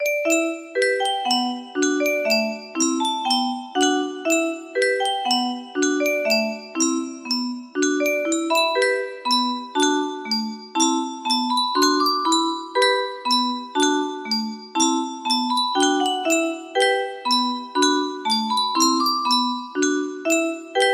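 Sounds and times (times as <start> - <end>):
music box melody: 0.0 - 20.9.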